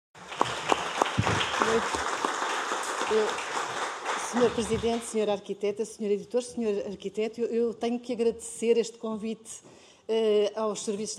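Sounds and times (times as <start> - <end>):
audience applause: 0.2 - 5.2
speech: 1.7 - 2.1, 3.1 - 3.4, 4.3 - 11.1.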